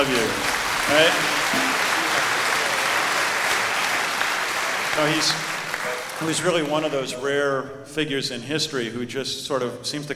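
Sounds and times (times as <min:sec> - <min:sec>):
speech: 0:00.0 - 0:01.8, 0:05.0 - 0:10.1
audience round of applause: 0:00.0 - 0:07.0.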